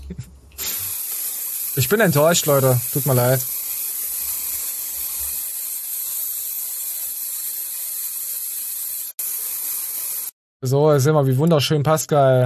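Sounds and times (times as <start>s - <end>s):
speech: 0.1s - 0.4s, 1.8s - 3.6s, 10.6s - 12.4s
aerosol carnival hair spray being sprayed: 0.6s - 10.4s.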